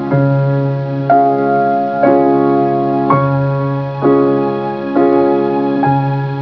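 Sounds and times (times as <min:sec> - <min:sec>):
piano: 0:00.0 - 0:06.3.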